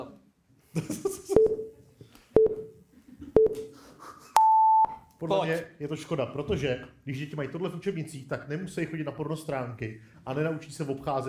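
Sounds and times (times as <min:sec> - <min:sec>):
speech: 0:00.0 - 0:01.2, 0:05.3 - 0:11.2
laughter: 0:00.7 - 0:01.5, 0:03.0 - 0:04.4
countdown timer beeping: 0:01.4 - 0:01.7, 0:02.4 - 0:02.7.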